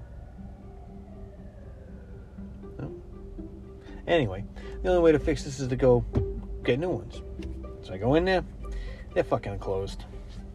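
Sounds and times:
emergency vehicle sirens in Boston: 0:00.0 - 0:05.2
speech: 0:04.1 - 0:08.6, 0:09.2 - 0:10.1.

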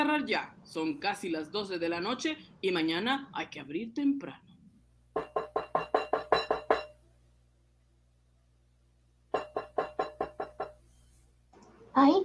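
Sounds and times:
speech: 0:00.1 - 0:04.5
knocking on a door: 0:05.1 - 0:06.9, 0:09.3 - 0:10.8.

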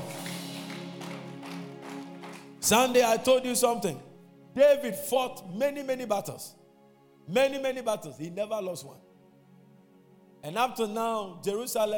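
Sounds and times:
audience clapping hands: 0:00.0 - 0:03.3
speech: 0:02.6 - 0:06.6, 0:07.3 - 0:09.0, 0:10.4 - 0:11.9.

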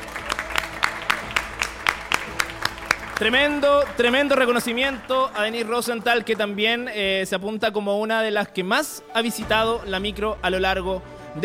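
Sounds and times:
audience applause: 0:00.0 - 0:07.2
speech: 0:03.2 - 0:11.4.

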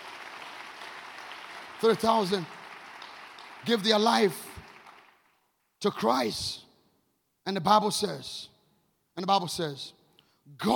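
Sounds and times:
crowd applause: 0:00.0 - 0:05.4
speech: 0:01.8 - 0:02.6, 0:03.6 - 0:04.5, 0:05.8 - 0:06.6, 0:07.4 - 0:08.5, 0:09.2 - 0:10.7.

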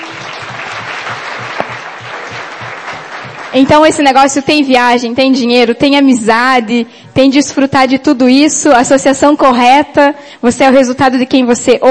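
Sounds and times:
audience applause: 0:00.0 - 0:04.0
speech: 0:03.6 - 0:11.8.

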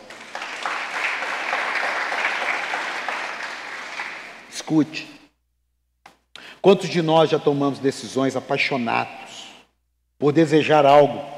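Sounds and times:
audience applauding: 0:00.0 - 0:04.5
speech: 0:04.7 - 0:05.2, 0:06.6 - 0:09.2, 0:10.2 - 0:11.3.

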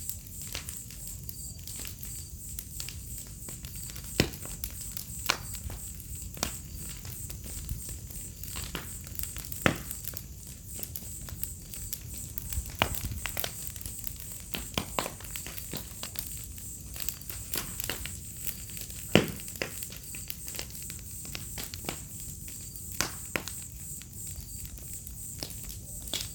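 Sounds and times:
burning wood crackling and popping: 0:00.0 - 0:26.3
cricket drone: 0:00.0 - 0:26.3.

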